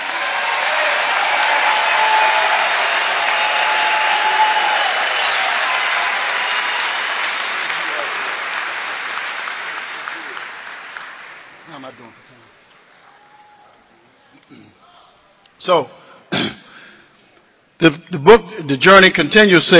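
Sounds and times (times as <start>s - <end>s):
audience applause: 0.0s - 12.6s
speech: 15.7s - 16.0s, 17.8s - 19.7s.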